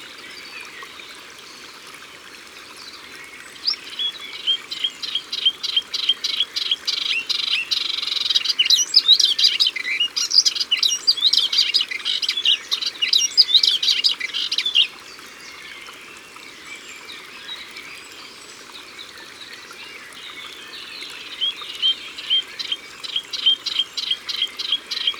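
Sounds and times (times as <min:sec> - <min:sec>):
Melodious warbler singing: 0:03.6 - 0:14.9, 0:20.4 - 0:25.1.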